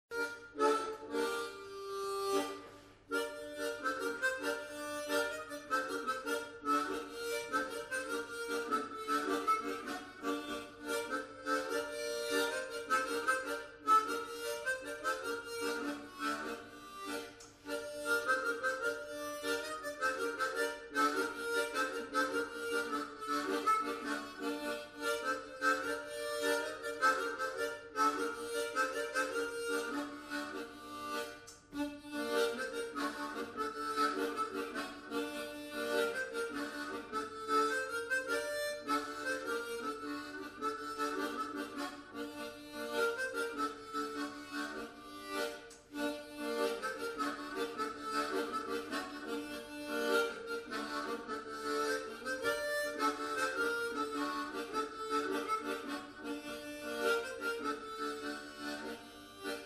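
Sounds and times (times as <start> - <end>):
polska dance tune: 0.1 - 31.1, 31.8 - 59.6.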